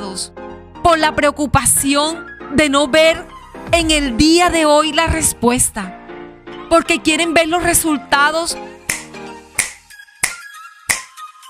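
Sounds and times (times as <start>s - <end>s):
speech: 0.2s - 6.0s, 6.7s - 8.8s
finger snap: 8.9s - 11.4s.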